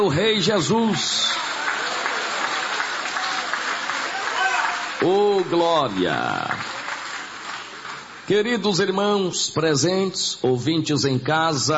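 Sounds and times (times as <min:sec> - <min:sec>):
speech: 0:00.0 - 0:01.5, 0:05.0 - 0:06.8, 0:08.3 - 0:11.7
audience applause: 0:00.8 - 0:08.3.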